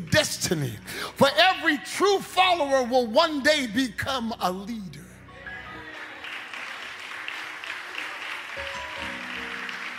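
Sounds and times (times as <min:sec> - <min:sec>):
speech: 0:00.1 - 0:05.0
brief scattered audience clapping: 0:06.2 - 0:09.9.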